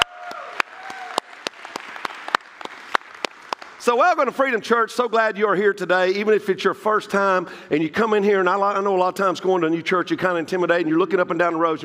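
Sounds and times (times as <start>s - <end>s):
church congregation applauding in praise: 0.0s - 4.4s
speech: 3.8s - 11.8s.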